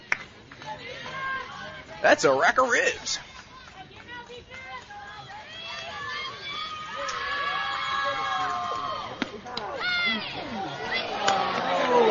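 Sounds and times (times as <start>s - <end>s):
speech: 2.0s - 3.3s
large baseball crowd jeering at a baseball game: 5.5s - 12.0s.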